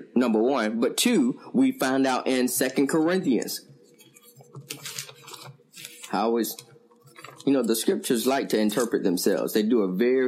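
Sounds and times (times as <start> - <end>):
speech: 0.2 - 3.7, 6.1 - 6.7, 7.4 - 10.2
Bible pages turning: 3.9 - 9.4.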